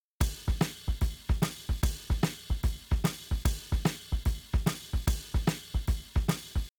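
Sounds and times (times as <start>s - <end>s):
shuffle drums: 0.2s - 6.7s.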